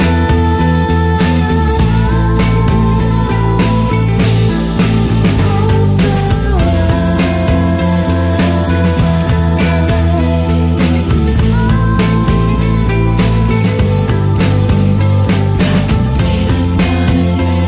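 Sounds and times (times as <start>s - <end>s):
rock music: 0.0s - 17.6s.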